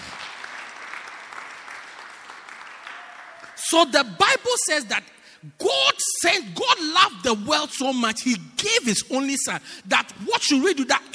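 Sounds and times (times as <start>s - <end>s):
audience applause: 0.0s - 3.6s
speech: 3.6s - 11.1s.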